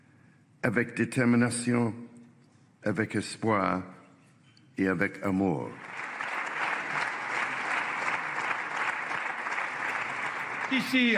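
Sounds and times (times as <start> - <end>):
speech: 0.6 - 2.0, 2.8 - 4.0, 4.8 - 6.0, 10.7 - 11.1
large audience applause in assembly: 5.7 - 11.1.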